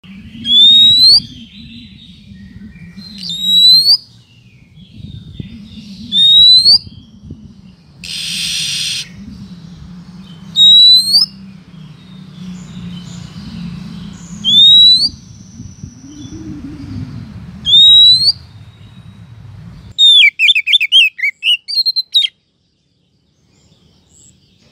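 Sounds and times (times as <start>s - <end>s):
Oriental magpie-robin rising whistle: 0.4s - 4.1s, 5.5s - 7.0s, 8.0s - 9.3s, 10.5s - 11.4s, 14.3s - 16.9s, 17.6s - 18.4s, 20.0s - 22.3s.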